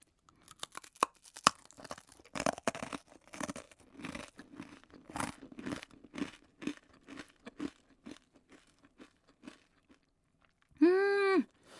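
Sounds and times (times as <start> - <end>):
eating crunchy kuro-okoshi rice cracker made with raw brown sugar: 0.0 - 10.7
person humming: 10.8 - 11.5.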